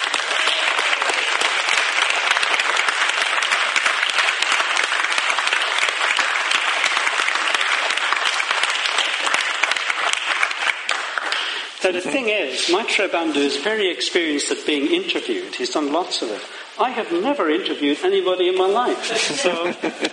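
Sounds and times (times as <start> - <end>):
audience clapping: 0.0 - 14.4
speech: 11.9 - 20.1
laughter: 19.0 - 20.1.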